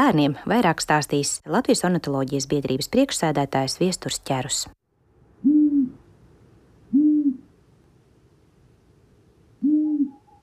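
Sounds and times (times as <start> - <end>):
speech: 0.0 - 4.8
long-eared owl hooting: 5.4 - 6.0, 6.9 - 7.6, 9.6 - 10.4.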